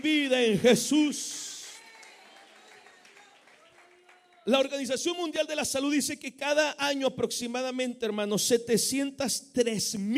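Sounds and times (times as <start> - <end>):
speech: 0.0 - 1.4, 4.5 - 10.1
congregation clapping in praise during a church service: 0.0 - 5.0.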